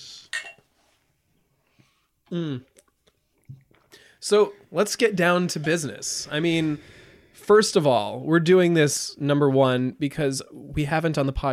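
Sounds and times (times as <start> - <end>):
glasses clinking in a toast: 0.3 - 0.7
speech: 2.3 - 2.8, 4.2 - 11.5.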